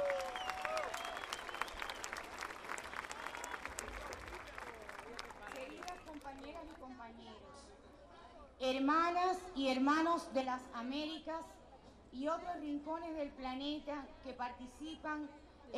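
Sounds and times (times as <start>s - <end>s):
audience applause: 0.0s - 6.8s
faint crowd chatter: 0.0s - 15.7s
speech: 8.6s - 15.7s.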